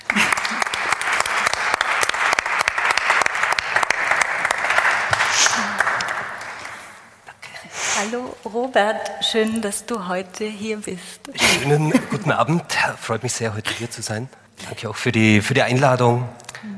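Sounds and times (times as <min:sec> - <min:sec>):
audience applause: 0:00.0 - 0:07.0
speech: 0:08.4 - 0:16.7.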